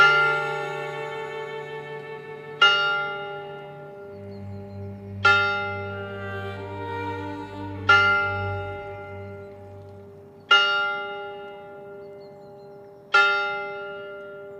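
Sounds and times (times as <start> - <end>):
tower clock bell striking: 0.0 - 1.4, 2.6 - 4.2, 5.2 - 6.2, 7.8 - 14.5
low droning tone: 0.0 - 10.5.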